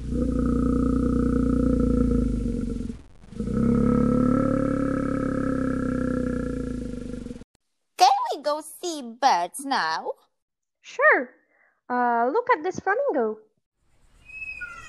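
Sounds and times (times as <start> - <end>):
polar bear roaring: 0.0 - 7.4
speech: 9.5 - 10.2, 10.9 - 13.5.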